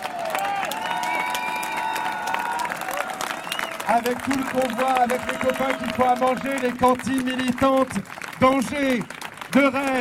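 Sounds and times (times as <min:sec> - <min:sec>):
cheering voices or whistles: 0:00.0 - 0:04.1, 0:04.8 - 0:06.4
outdoor crowd applauding: 0:00.0 - 0:09.9
speech: 0:03.9 - 0:09.9.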